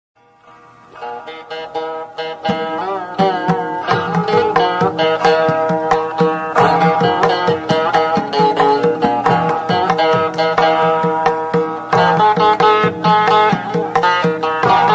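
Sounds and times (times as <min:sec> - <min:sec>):
instrumental devotional song: 0:00.2 - 0:14.9.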